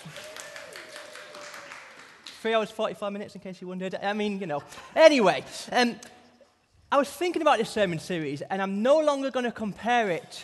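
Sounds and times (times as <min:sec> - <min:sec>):
person clapping: 0:00.0 - 0:02.4
speech: 0:02.4 - 0:06.2, 0:06.9 - 0:10.4.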